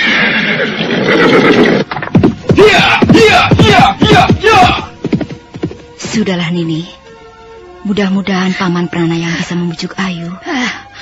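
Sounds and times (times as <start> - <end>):
horse neighing: 0.0 - 2.0
horse galloping down a slope: 0.7 - 6.2
speech: 6.2 - 7.0, 7.8 - 11.0.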